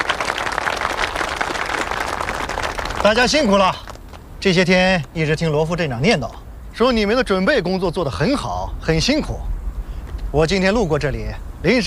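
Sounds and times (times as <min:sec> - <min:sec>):
crowd applause welcoming a visiting official: 0:00.0 - 0:04.3
speech: 0:03.0 - 0:03.8, 0:04.4 - 0:09.5, 0:10.3 - 0:11.8.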